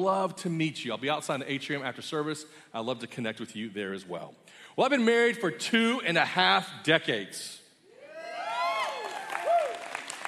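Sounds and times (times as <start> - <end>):
speech: 0.0 - 7.6
church congregation clapping: 8.8 - 10.2.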